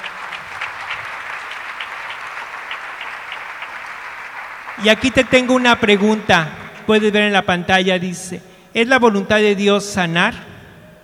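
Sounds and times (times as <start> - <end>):
audience applause: 0.0 - 6.5
speech: 4.8 - 10.5.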